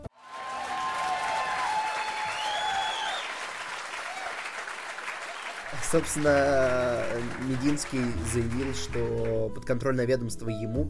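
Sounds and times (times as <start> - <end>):
applause: 0.0 - 9.5
speech: 5.8 - 10.8.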